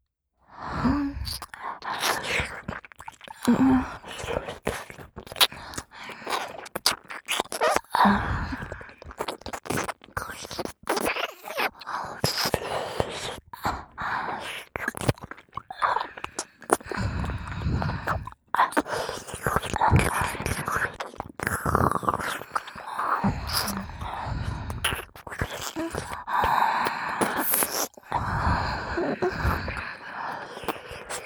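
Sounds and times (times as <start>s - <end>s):
ear licking in both ears ASMR: 1.3s - 13.6s, 14.4s - 31.2s.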